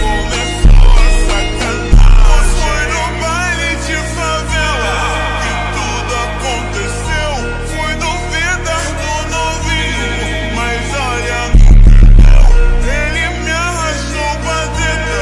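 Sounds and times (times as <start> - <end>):
slowed reverb Brazilian phonk music: 0.0 - 15.1.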